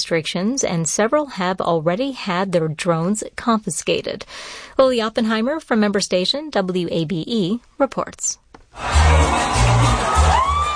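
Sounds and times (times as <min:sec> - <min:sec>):
speech: 0:00.1 - 0:10.0
football fans cheering in Atlanta as Mexico beats South Africa: 0:08.8 - 0:10.7.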